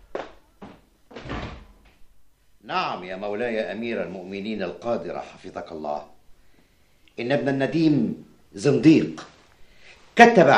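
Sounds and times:
door shut with heavy wooden thuds in a historical Arabic drama: 0.2 - 2.0
speech: 2.7 - 6.1, 7.2 - 9.3, 10.2 - 10.5.

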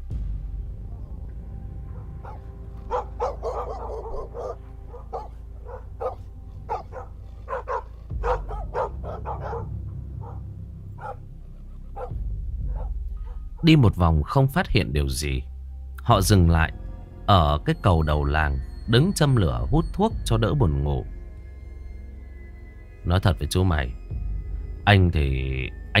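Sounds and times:
dogs barking in the distance from the village: 1.8 - 13.6
frogs croaking from the fields: 1.9 - 13.6
speech: 13.6 - 15.5, 16.1 - 21.2, 23.0 - 24.2, 24.8 - 25.9.

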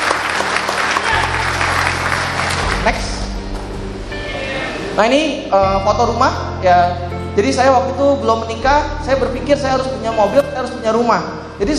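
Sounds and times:
audience applause at a business success-story seminar: 0.0 - 3.2
speech: 2.8 - 3.1, 5.0 - 11.7.

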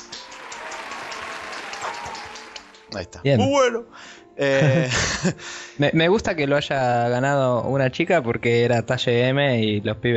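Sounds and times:
applause: 0.0 - 2.9
laughter: 0.4 - 2.8, 4.4 - 5.4
speech: 2.9 - 10.1.

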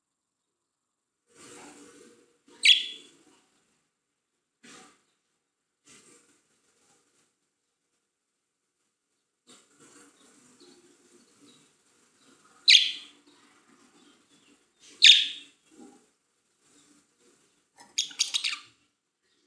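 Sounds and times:
budgerigar chirping and chattering: 2.6 - 3.1, 12.7 - 13.1, 15.0 - 15.5, 17.9 - 18.7.

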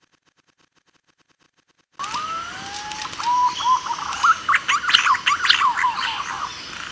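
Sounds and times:
green pigeon calling with whistles: 2.1 - 6.6.

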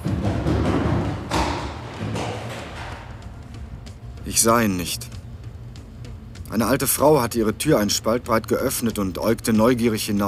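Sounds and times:
heavy footsteps thumping down a staircase: 0.0 - 4.2
speech: 4.3 - 5.1, 6.5 - 10.2.

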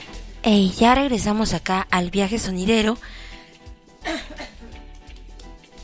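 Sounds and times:
speech: 0.5 - 3.3
person coughing from a cold: 4.0 - 4.8.

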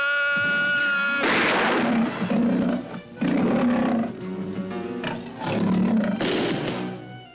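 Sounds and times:
huge hungry bear roaring and growling: 0.1 - 7.0.

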